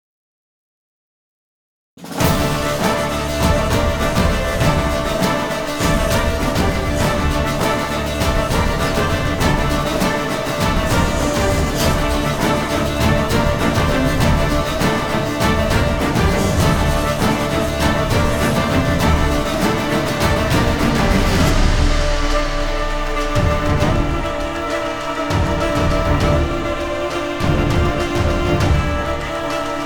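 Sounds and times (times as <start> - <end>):
combat sounds: 2.2 - 29.7.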